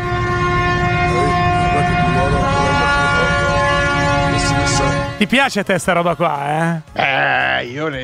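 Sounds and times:
Ever Given cargo ship sirens sounding in celebration: 0.0s - 5.6s
speech: 5.2s - 8.0s.

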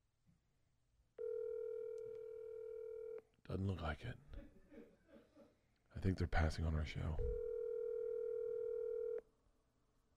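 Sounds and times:
electronic telephone ringing tone of an unanswered call: 1.2s - 3.2s, 7.4s - 9.2s
speech: 3.5s - 4.5s, 6.0s - 7.4s.

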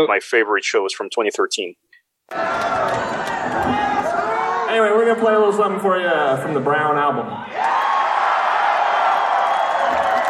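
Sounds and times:
speech: 0.0s - 3.8s, 4.7s - 7.8s
concert crowd cheering and whooping at a 2013 live show: 2.3s - 5.2s, 7.2s - 10.2s.

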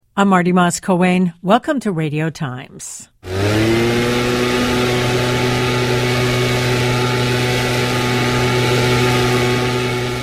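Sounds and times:
speech: 0.2s - 4.1s
gas-powered leaf blower engine: 3.2s - 10.2s.

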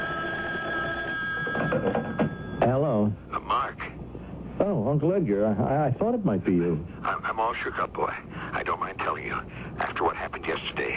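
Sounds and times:
telephone ringing: 0.0s - 2.8s
low mechanical hum: 0.0s - 10.9s
speech: 1.7s - 2.2s, 4.9s - 10.9s.

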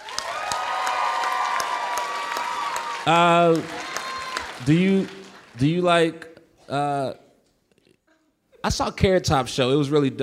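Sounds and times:
crowd applauding: 0.0s - 6.2s
speech: 3.1s - 3.8s, 4.6s - 7.2s, 8.6s - 10.2s.

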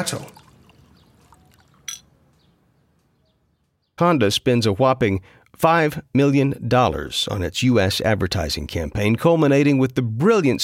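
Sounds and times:
speech: 0.0s - 0.4s, 4.0s - 10.6s
sake trickling into a cup: 0.0s - 2.1s
bottle clinking on a cup rim: 1.8s - 2.1s.

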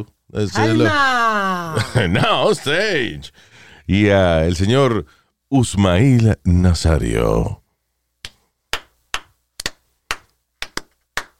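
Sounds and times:
speech: 0.0s - 7.6s
laughter: 1.5s - 3.1s
weak hand clapping: 8.2s - 11.3s.

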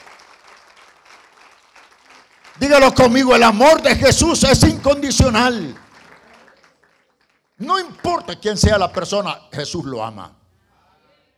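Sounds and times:
audience applauding: 0.0s - 9.0s
speech: 2.6s - 5.8s, 7.6s - 10.4s.

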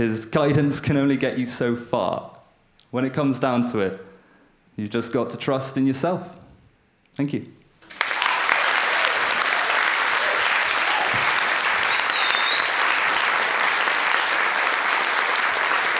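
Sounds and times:
speech: 0.0s - 2.3s, 2.9s - 4.1s, 4.8s - 6.4s, 7.2s - 7.6s
audience applause: 7.8s - 15.9s
high whistle or cheer: 8.0s - 13.3s.

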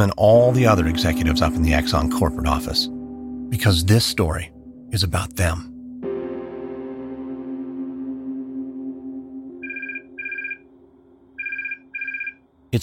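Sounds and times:
speech: 0.0s - 5.7s
telephone ringing: 9.5s - 10.7s, 11.4s - 12.4s.

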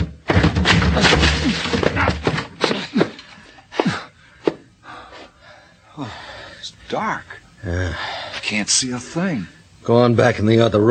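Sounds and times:
door being forced open with a shoulder: 0.0s - 3.1s
speech: 7.0s - 10.8s
person grunting with strain: 7.6s - 8.0s.

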